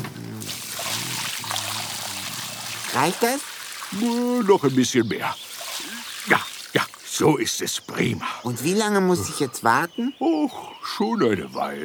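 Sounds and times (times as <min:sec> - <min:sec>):
water pouring from a watering can onto soil: 0:00.4 - 0:07.2
speech: 0:03.0 - 0:05.4, 0:06.3 - 0:11.8.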